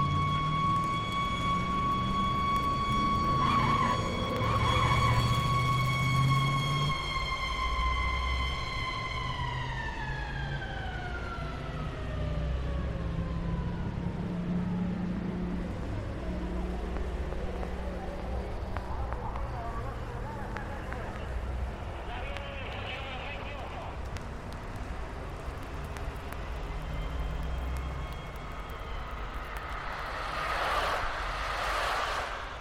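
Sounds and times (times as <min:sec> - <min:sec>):
siren: 0:00.0 - 0:32.5
street traffic: 0:00.0 - 0:32.5
voices: 0:17.9 - 0:24.2.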